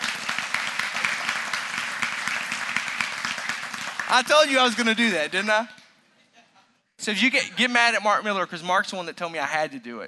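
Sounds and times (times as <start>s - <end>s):
audience applause: 0.0s - 5.1s
speech: 4.1s - 5.8s, 7.1s - 10.0s.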